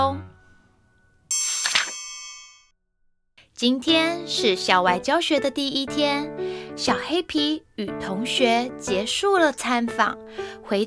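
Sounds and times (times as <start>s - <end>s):
page-turn cue chime: 1.3s - 2.6s
speech: 3.6s - 10.8s.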